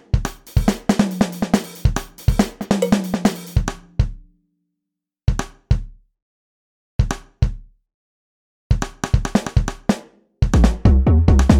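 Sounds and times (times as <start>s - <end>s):
percussion: 0.2s - 4.3s, 8.8s - 11.5s.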